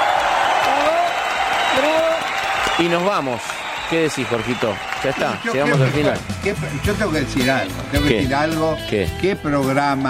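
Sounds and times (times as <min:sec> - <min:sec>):
audience clapping: 0:00.0 - 0:08.0
speech: 0:02.8 - 0:10.0.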